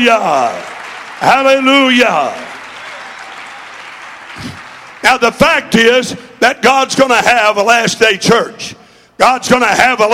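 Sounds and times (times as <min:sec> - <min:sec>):
speech: 0:00.0 - 0:02.5, 0:04.4 - 0:10.1
audience clapping hands: 0:00.0 - 0:06.2.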